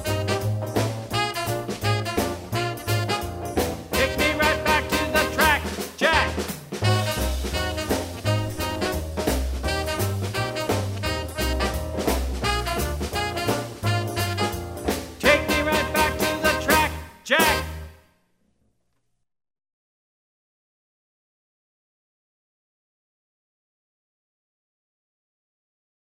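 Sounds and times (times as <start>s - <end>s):
boogie music: 0.0s - 18.0s.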